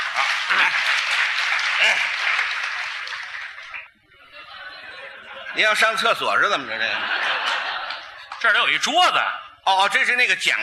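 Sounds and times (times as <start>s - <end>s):
audience applause: 0.0s - 3.9s
laughter: 0.1s - 8.7s
speech: 0.2s - 2.6s, 5.6s - 7.2s, 8.4s - 10.6s.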